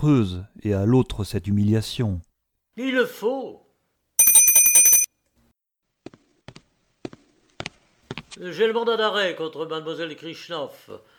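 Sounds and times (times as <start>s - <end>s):
speech: 0.0s - 3.6s, 8.4s - 11.1s
door bell ringing in a rapid high metallic trill: 4.2s - 5.1s.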